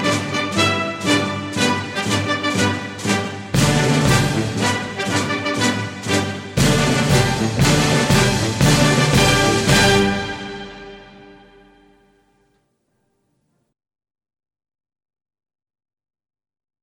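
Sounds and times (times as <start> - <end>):
national anthem: 0.0 - 12.0.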